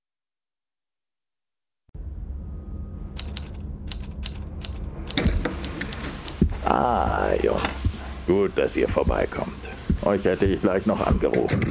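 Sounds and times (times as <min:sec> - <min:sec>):
low steady hum: 0:02.0 - 0:11.6
typewriter keys clacking: 0:03.2 - 0:06.4
speech: 0:06.7 - 0:11.6.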